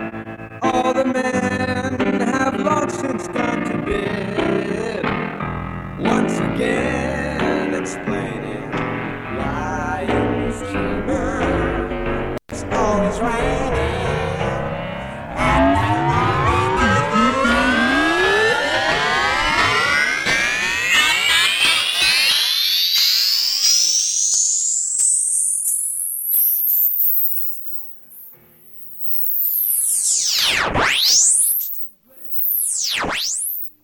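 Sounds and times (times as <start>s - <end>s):
song sweep: 0.1s - 33.8s.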